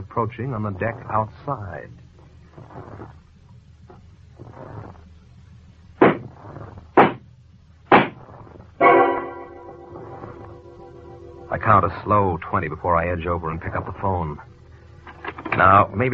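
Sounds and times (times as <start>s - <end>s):
speech: 0.0s - 2.0s, 11.5s - 14.5s, 15.6s - 16.1s
low murky rumble: 0.0s - 16.1s
gunshots fired into a mattress: 6.0s - 6.3s, 7.0s - 7.2s, 7.9s - 8.2s.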